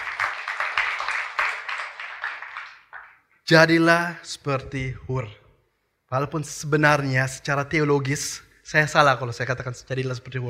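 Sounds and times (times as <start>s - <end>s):
applause: 0.0s - 3.4s
speech: 3.5s - 5.4s, 6.1s - 10.4s.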